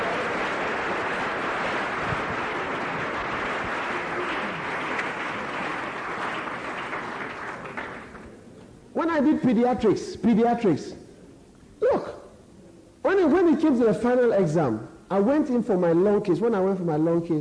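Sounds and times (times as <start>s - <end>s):
audience clapping: 0.0s - 8.5s
speech: 9.0s - 11.0s, 13.6s - 17.3s.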